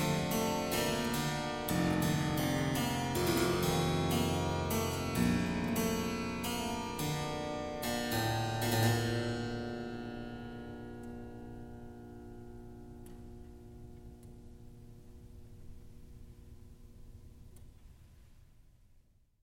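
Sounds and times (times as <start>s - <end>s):
harpsichord prelude in C major: 0.0s - 14.5s.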